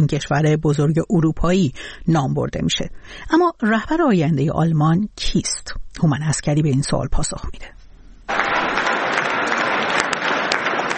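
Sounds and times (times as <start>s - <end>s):
speech: 0.0s - 8.4s
supporters applauding: 8.3s - 10.9s.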